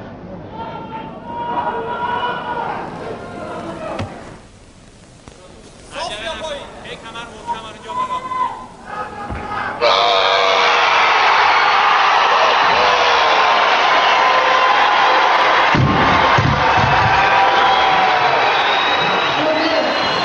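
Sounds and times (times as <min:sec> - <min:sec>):
Iranian crowd cheering for weightlifter Hossein Rezazadeh: 0:00.5 - 0:04.0, 0:08.0 - 0:20.2.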